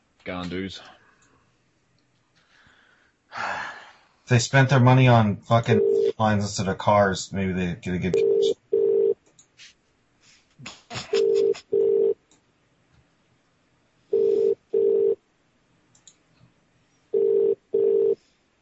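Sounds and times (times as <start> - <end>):
speech: 0.2 - 1.0, 4.3 - 8.6
telephone ringing: 5.8 - 6.1, 8.1 - 9.2, 11.2 - 12.2, 14.1 - 15.2, 17.1 - 18.2
clicks: 15.9 - 16.5.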